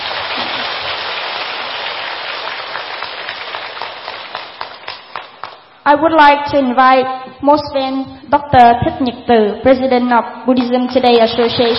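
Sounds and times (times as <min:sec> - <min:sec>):
audience applause: 0:00.0 - 0:05.7
speech: 0:05.9 - 0:11.7.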